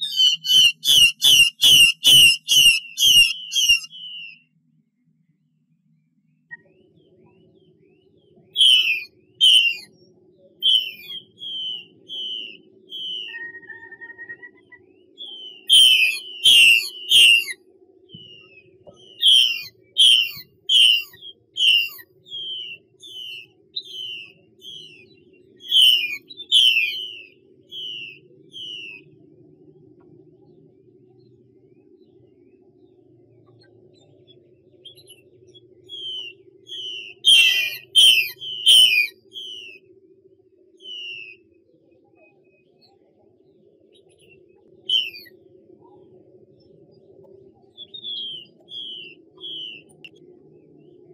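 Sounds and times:
Chinese hwamei singing descending whistles: 0:00.0 - 0:04.5, 0:08.6 - 0:09.9, 0:10.6 - 0:29.1, 0:35.8 - 0:39.9, 0:40.8 - 0:41.5, 0:44.8 - 0:45.3, 0:47.7 - 0:50.1.

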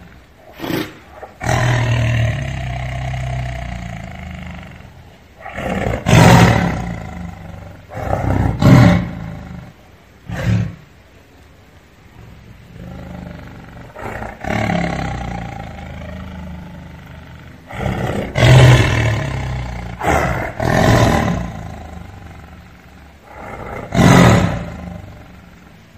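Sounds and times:
tiger roaring: 0:00.0 - 0:11.2, 0:12.1 - 0:25.9.

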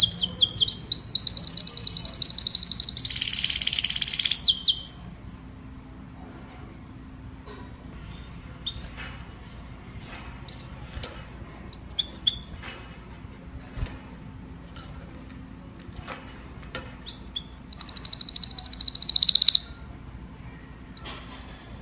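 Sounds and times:
domestic canary singing: 0:00.0 - 0:05.1, 0:08.0 - 0:09.0, 0:10.0 - 0:12.7, 0:16.6 - 0:21.3.

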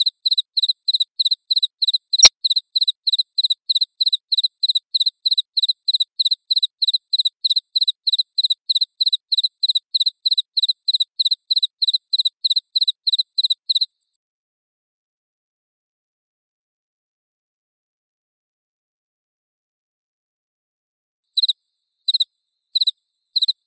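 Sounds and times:
cricket chirping: 0:00.2 - 0:13.9, 0:21.4 - 0:23.6.

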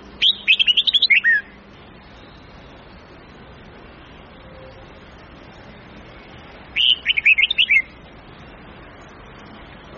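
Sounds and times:
red-whiskered bulbul song of slurred whistled notes: 0:00.2 - 0:01.6, 0:06.2 - 0:08.0.

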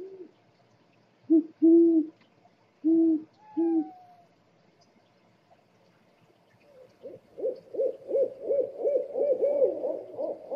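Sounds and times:
owl hooting: 0:02.8 - 0:04.3, 0:07.0 - 0:10.5.

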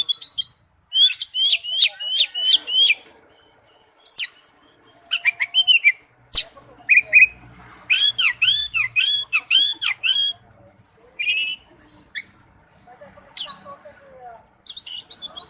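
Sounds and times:
Oriental magpie-robin song: 0:00.0 - 0:07.3, 0:07.9 - 0:10.4, 0:11.2 - 0:12.4, 0:14.7 - 0:15.4.

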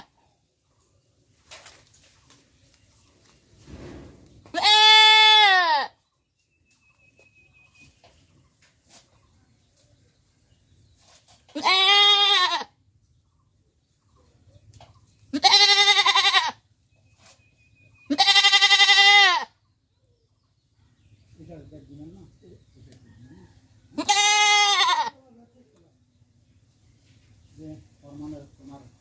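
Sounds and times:
goat bleating: 0:04.5 - 0:06.0, 0:11.5 - 0:12.8, 0:15.3 - 0:16.7, 0:18.1 - 0:19.6, 0:23.9 - 0:25.2.

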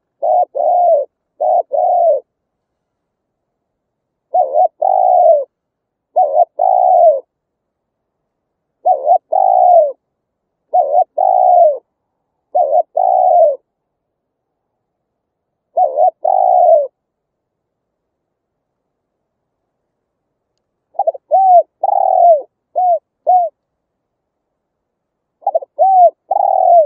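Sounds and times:
spotted dove hooting: 0:00.0 - 0:02.4, 0:04.2 - 0:07.4, 0:08.7 - 0:10.0, 0:10.6 - 0:13.7, 0:15.6 - 0:17.0, 0:20.9 - 0:23.6, 0:25.4 - 0:26.8.

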